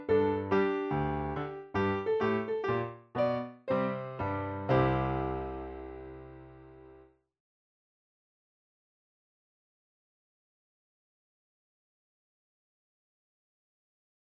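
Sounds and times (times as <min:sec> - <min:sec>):
instrumental music: 0:00.0 - 0:07.1.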